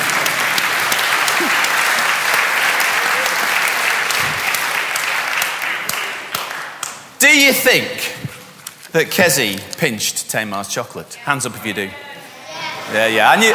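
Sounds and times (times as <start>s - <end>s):
group clapping: 0.0s - 7.2s
speech: 7.3s - 8.2s, 8.9s - 12.1s, 12.9s - 13.5s.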